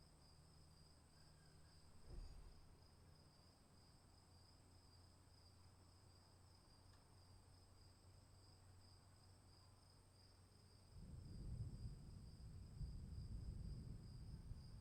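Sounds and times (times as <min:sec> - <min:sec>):
afternoon storm: 0:11.0 - 0:14.8.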